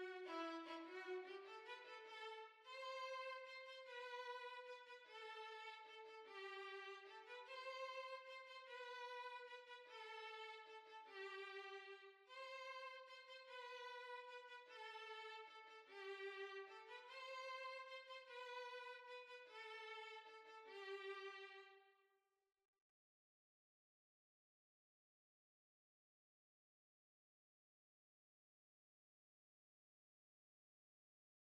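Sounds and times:
violin: 0:00.0 - 0:21.9.

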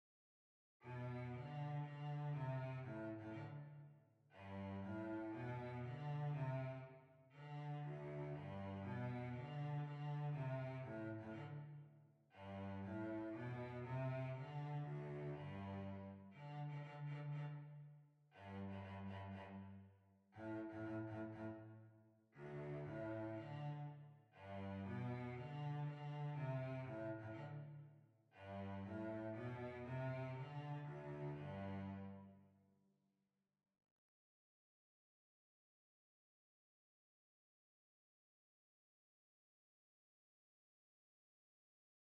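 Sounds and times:
violoncello: 0:00.8 - 0:32.6.

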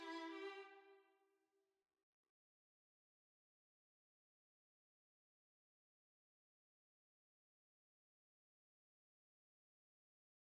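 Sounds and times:
violin playing a hornpipe: 0:00.0 - 0:00.8.

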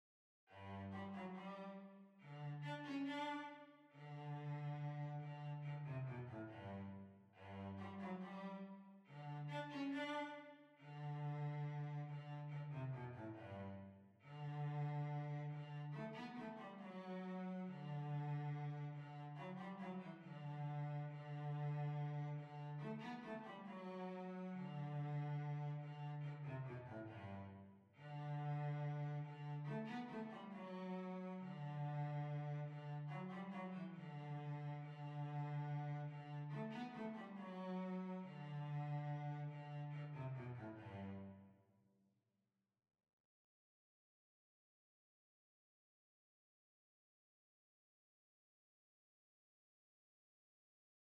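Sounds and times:
hornpipe on violoncello: 0:00.5 - 0:41.4.

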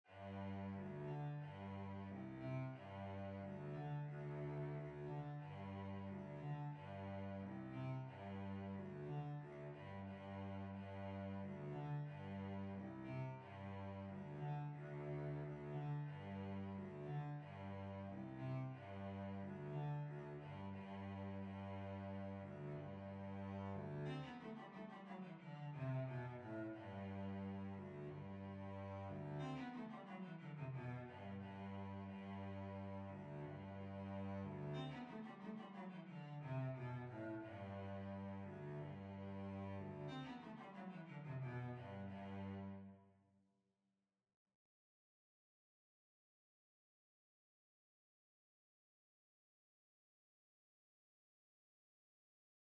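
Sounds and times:
violoncello: 0:00.0 - 0:43.2.

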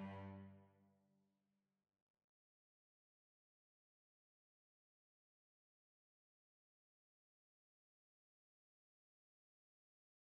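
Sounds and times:
violoncello: 0:00.0 - 0:00.7.

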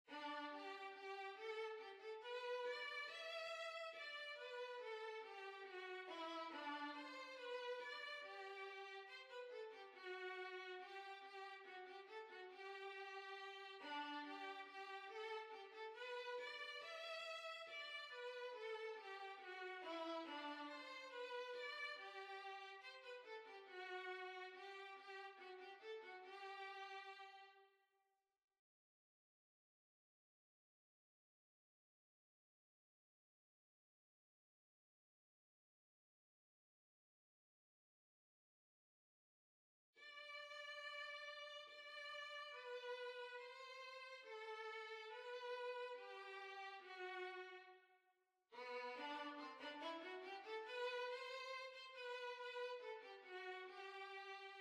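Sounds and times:
violin: 0:00.0 - 0:27.6, 0:40.0 - 0:47.8, 0:48.6 - 0:54.6.

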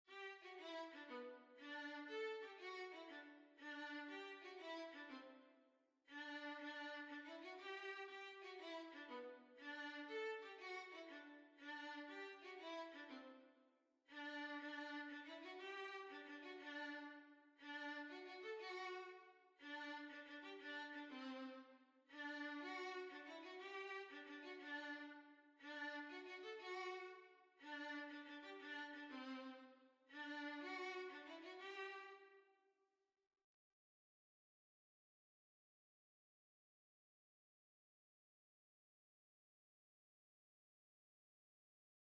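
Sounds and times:
violin: 0:00.0 - 0:05.5, 0:06.1 - 0:13.5, 0:14.1 - 0:32.4.

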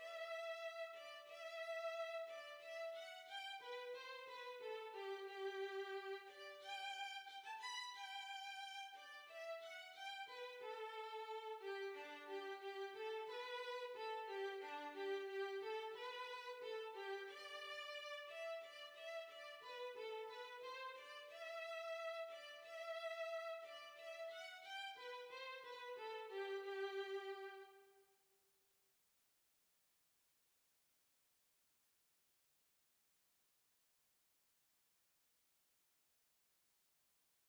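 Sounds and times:
violin: 0:00.0 - 0:27.9.

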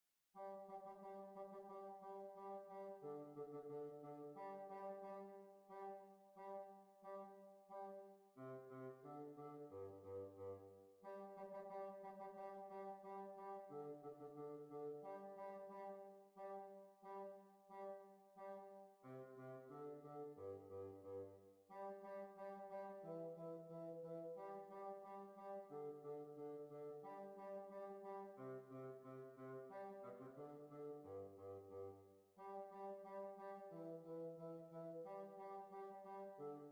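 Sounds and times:
hornpipe tune: 0:00.4 - 0:36.7.

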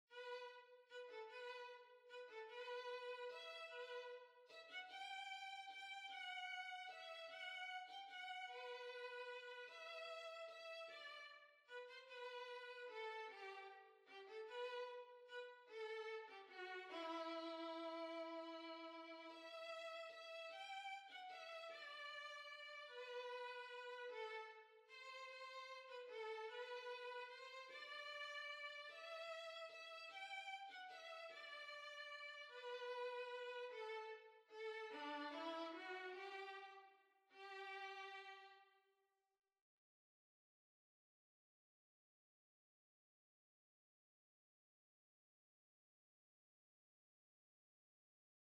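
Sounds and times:
violin waltz: 0:00.1 - 0:38.6.

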